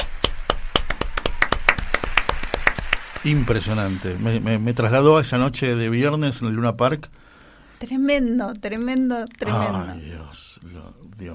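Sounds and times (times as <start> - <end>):
people clapping: 0.0 - 4.4
speech: 3.2 - 7.2, 7.8 - 11.3.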